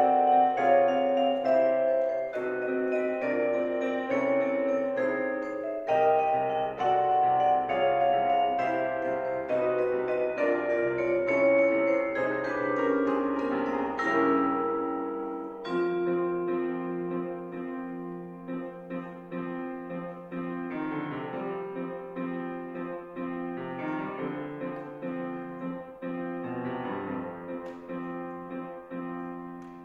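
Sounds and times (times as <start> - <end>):
vibraphone in a concerto: 0.0 - 18.1
orchestra in a concerto: 0.0 - 29.8.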